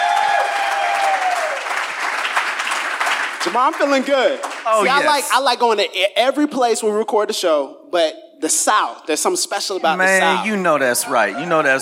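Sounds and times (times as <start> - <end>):
live audience applause at Cornerstone Church: 0.0 - 5.2
speech: 3.4 - 11.7.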